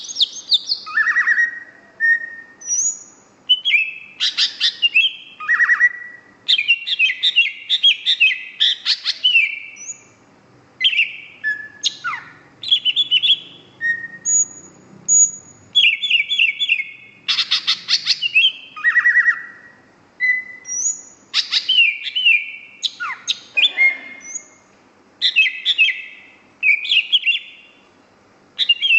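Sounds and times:
greater green leafbird singing whistles and rattling trills: 0.0 - 10.2, 10.8 - 24.6, 25.2 - 27.8, 28.6 - 28.9.

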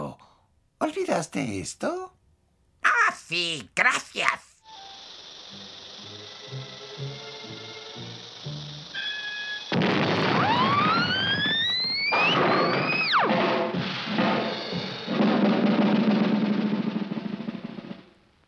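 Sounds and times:
speech: 0.8 - 2.1, 3.3 - 4.4
cartoon explosion: 8.9 - 18.2.

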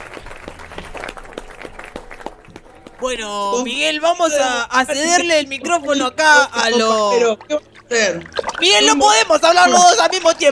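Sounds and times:
sparse audience hand claps at a live stage show: 0.0 - 3.6
speech: 3.0 - 10.5.

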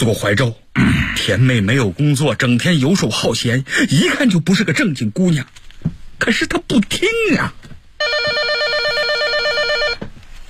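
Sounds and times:
speech: 0.0 - 8.5
telephone ringing: 8.0 - 10.1.

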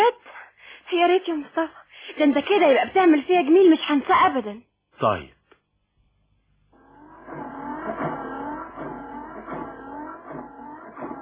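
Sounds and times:
speech: 0.9 - 5.4
car engine idling and revving after repair by a mechanic: 6.8 - 11.1.

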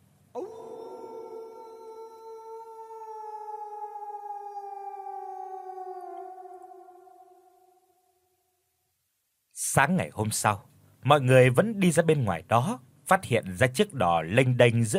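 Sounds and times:
dog howling at night in a village: 0.4 - 8.2
speech: 9.6 - 14.9.

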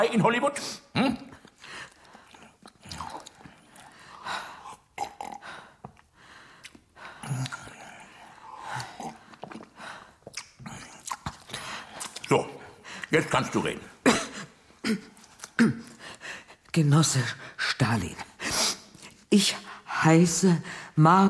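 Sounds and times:
speech: 0.0 - 1.3, 13.1 - 13.9, 14.9 - 15.8, 16.7 - 18.3, 19.3 - 21.2
person chewing and biting food while eating at breakfast: 1.3 - 13.2, 14.8 - 16.7.

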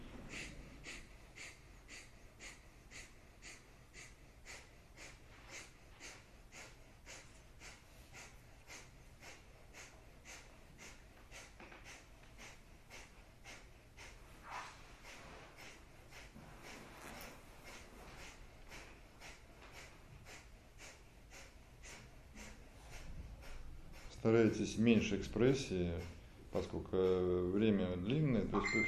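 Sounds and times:
forceful nasal exhalations of kapalabhati yoga breathing: 0.0 - 27.2
speech: 24.2 - 28.8.

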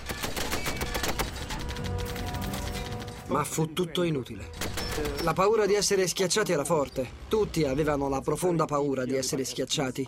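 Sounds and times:
machine gun and rifle fire in battle against the first tanks: 0.0 - 3.2, 4.6 - 5.4
speech: 3.3 - 10.0.

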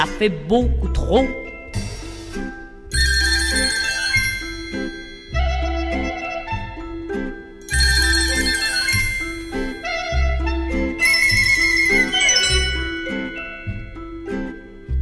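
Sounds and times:
speech: 0.1 - 1.4
telephone ringing in bright trilling bursts: 2.9 - 6.6, 7.5 - 10.3, 10.9 - 14.9.

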